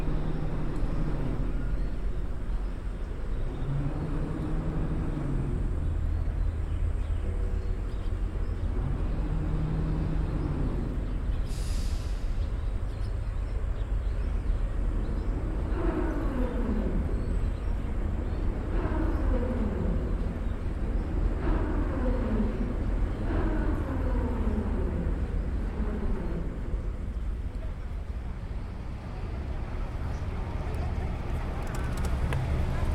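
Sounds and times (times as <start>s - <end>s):
large tourist boat engines droning: 0.0s - 32.9s
brief hiss: 11.4s - 12.5s.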